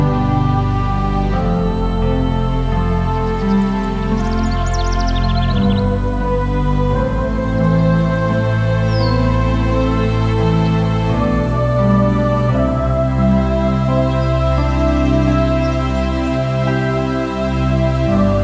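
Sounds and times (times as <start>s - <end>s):
soft sustained meditation music: 0.0s - 18.4s
bird chirps: 3.3s - 6.0s, 8.9s - 9.3s.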